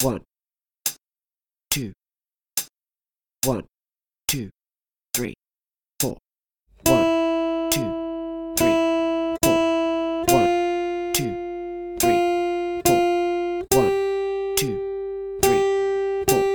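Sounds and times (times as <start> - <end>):
long notes on two guitar strings: 6.8 - 16.5.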